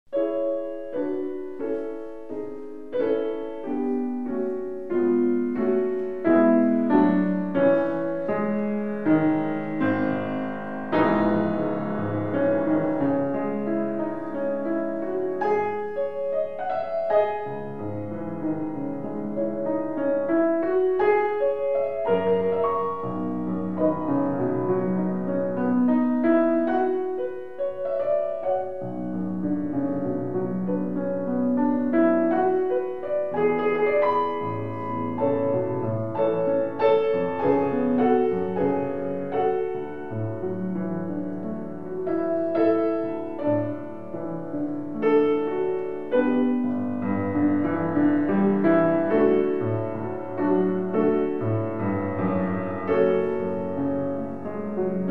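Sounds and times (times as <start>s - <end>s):
live piano recital prelude: 0.1s - 55.0s.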